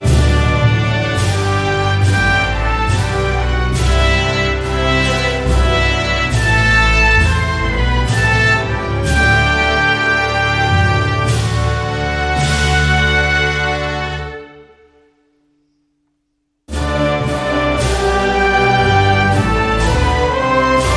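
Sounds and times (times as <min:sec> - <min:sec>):
serious national anthem music: 0:00.0 - 0:15.4, 0:16.7 - 0:20.9.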